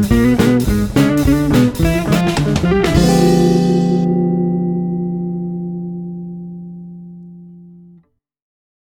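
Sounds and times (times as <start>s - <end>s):
whole half diminished scale: 0.2s - 8.0s.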